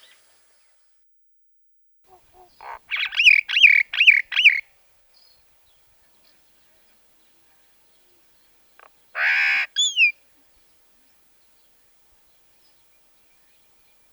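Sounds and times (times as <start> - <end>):
common myna calling: 2.1 - 4.7, 9.2 - 10.1.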